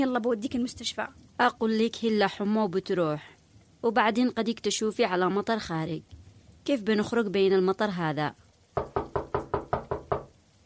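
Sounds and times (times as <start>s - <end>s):
speech: 0.0s - 9.0s
knocking on a door late at night on a rainy evening: 8.8s - 10.4s.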